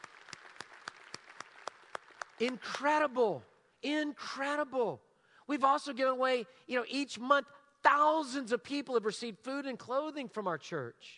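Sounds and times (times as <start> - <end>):
faint applause in a church: 0.0 - 2.7
speech: 2.4 - 11.1.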